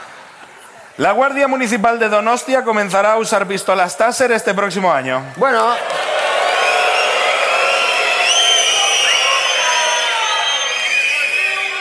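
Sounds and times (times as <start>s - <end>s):
speech: 1.0s - 6.1s
audience shouting: 5.6s - 11.7s.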